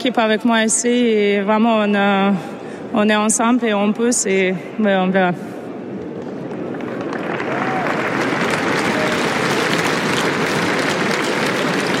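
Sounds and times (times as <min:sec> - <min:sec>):
speech: 0:00.0 - 0:05.6
stadium crowd applauding: 0:06.4 - 0:11.9.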